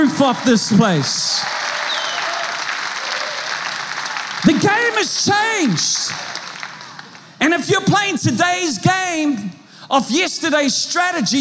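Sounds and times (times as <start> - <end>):
speech: 0.0 - 1.6, 4.4 - 6.4, 7.4 - 11.3
church congregation applauding: 0.0 - 8.6.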